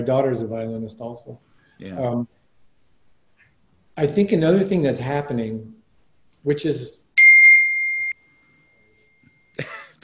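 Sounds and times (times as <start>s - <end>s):
speech: 0.0s - 2.4s, 4.0s - 5.8s, 6.4s - 7.0s, 9.6s - 10.0s
high-pitched electronic beep: 7.2s - 9.6s.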